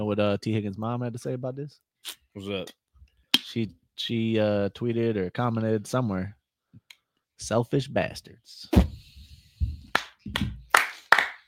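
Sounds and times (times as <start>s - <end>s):
speech: 0.1s - 2.8s, 3.5s - 6.4s, 7.4s - 8.9s
hands clapping: 9.8s - 11.4s.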